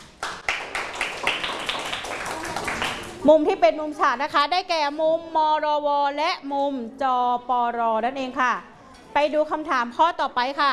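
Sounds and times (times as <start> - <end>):
classroom clapping: 0.0 - 3.2
speech: 3.2 - 10.7.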